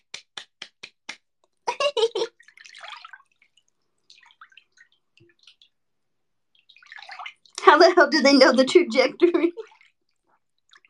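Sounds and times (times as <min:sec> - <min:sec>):
hand slapping a thigh: 0:00.0 - 0:01.4
speech: 0:07.8 - 0:09.6.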